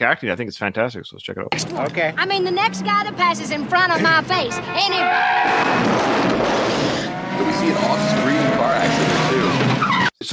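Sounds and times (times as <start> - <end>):
speech: 0.0 - 10.3
tires squealing: 2.6 - 10.2
car crash in film scene: 5.3 - 10.1.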